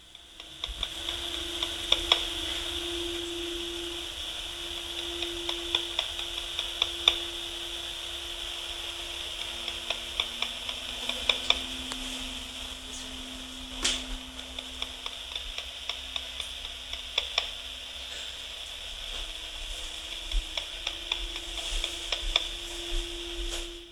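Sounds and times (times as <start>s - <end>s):
repeated clicking recorded on phone through a monitor: 0.0s - 22.7s.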